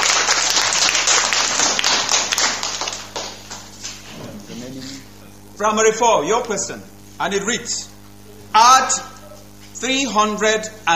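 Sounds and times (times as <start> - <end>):
round of applause from a group: 0.0 - 4.2
speech: 5.6 - 7.9, 8.5 - 9.1, 9.8 - 10.9.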